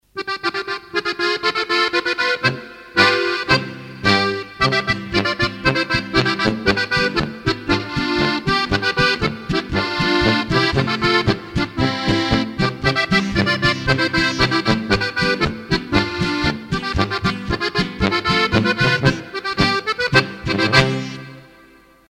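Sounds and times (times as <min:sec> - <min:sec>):
Plattler Langschottisch folk dance music: 0:00.2 - 0:21.8.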